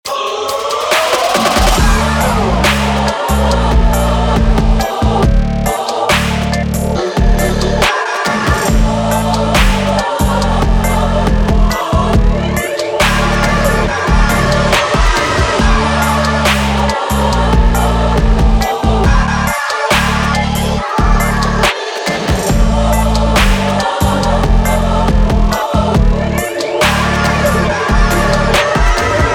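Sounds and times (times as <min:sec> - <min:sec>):
dark choir: 0:00.0 - 0:29.3.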